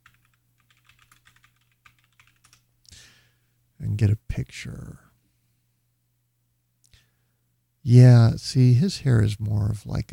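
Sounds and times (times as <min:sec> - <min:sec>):
typing a name on a computer keyboard: 0:00.0 - 0:02.6
speech: 0:03.8 - 0:05.1, 0:07.9 - 0:10.1.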